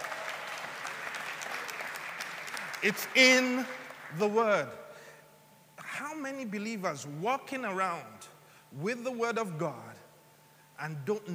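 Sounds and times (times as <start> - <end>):
audience applause: 0.0 - 4.2
speech: 2.8 - 4.8, 6.2 - 9.9, 10.8 - 11.3.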